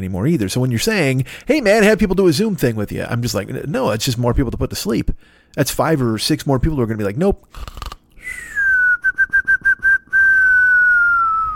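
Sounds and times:
speech: 0.0 - 8.5
person imitating a whistling snore: 8.2 - 11.5.

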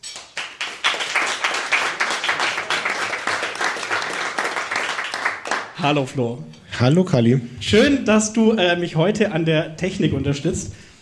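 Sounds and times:
applause: 0.1 - 5.8
speech: 5.8 - 10.8.

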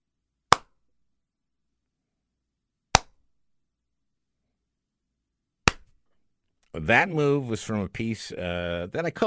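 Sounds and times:
slow sarcastic hand claps: 0.5 - 0.8, 2.9 - 3.2, 5.6 - 6.0
speech: 6.8 - 9.2.

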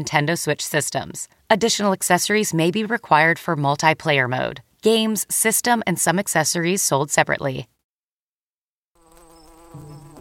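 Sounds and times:
speech: 0.0 - 7.8
mosquito buzzing: 9.0 - 10.2.

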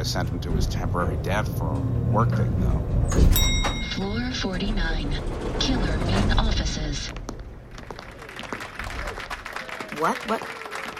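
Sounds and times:
speech: 0.0 - 7.3, 10.0 - 10.9
crowd clapping: 7.2 - 10.9.

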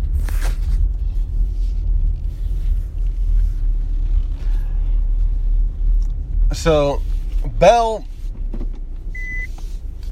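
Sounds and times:
low car engine rumble: 0.0 - 10.1
speech: 6.6 - 8.1
car reversing alert beep while parking: 9.2 - 9.5.

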